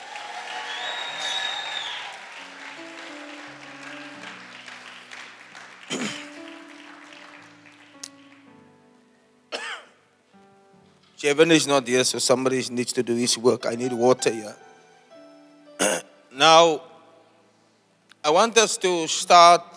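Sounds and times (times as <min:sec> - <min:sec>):
audience applauding: 0:00.0 - 0:08.6
speech: 0:11.2 - 0:14.7, 0:16.4 - 0:16.9, 0:18.2 - 0:19.7.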